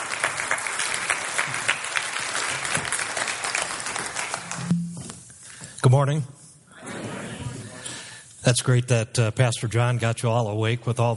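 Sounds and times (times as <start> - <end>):
round of applause: 0.0 - 4.7
speech: 5.8 - 6.4, 8.5 - 11.1.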